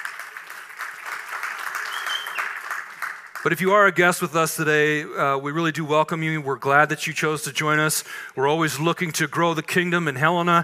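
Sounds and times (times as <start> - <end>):
church congregation applauding at a Labor Day weekend service in Helena: 0.0 - 4.0
speech: 3.4 - 10.6.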